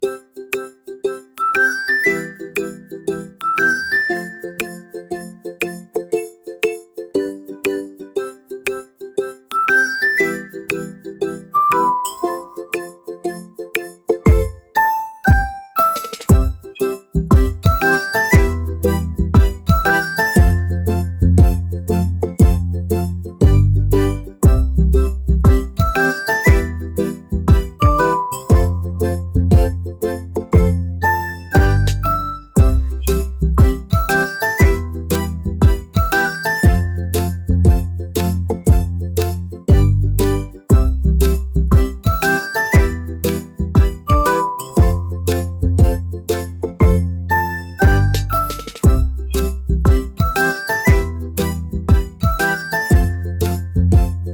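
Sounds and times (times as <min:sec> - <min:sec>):
ukulele: 0:00.0 - 0:54.3.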